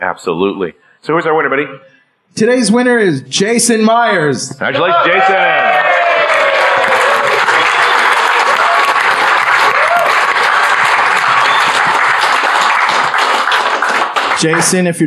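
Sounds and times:
speech: 0.0 - 5.9, 14.4 - 15.0
full round of applause: 5.1 - 15.0.

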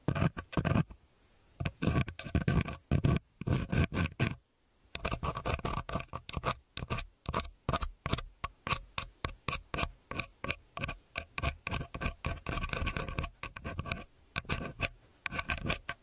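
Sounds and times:
earpick scraping and scratching: 1.6 - 4.4, 5.0 - 16.0.

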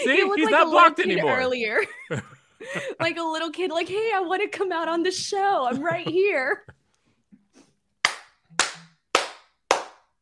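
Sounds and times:
speech: 0.0 - 6.8
hand claps: 8.0 - 10.2.

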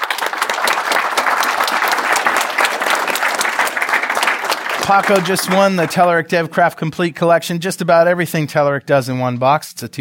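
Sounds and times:
audience applause for a prize winner: 0.0 - 6.2
speech: 4.9 - 9.9.

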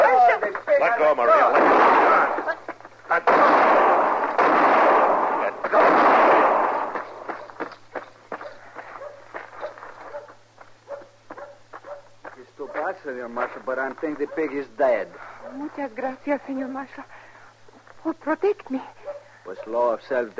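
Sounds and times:
speech: 0.8 - 2.0, 13.3 - 17.2, 18.0 - 20.3
gunshots in a street shootout: 1.4 - 7.5.

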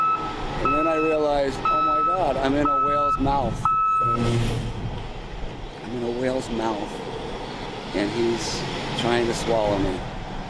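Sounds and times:
dump truck reversing beep: 0.0 - 4.7
dump truck diesel engine rumble: 0.0 - 10.4
speech: 0.6 - 4.8, 5.9 - 7.2, 7.9 - 10.1.

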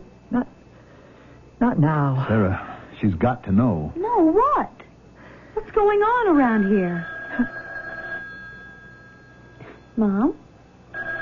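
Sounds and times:
speech: 0.3 - 0.6, 1.6 - 4.8, 5.7 - 7.6, 10.0 - 10.4
telephone ringing: 6.2 - 10.0, 10.9 - 11.2.

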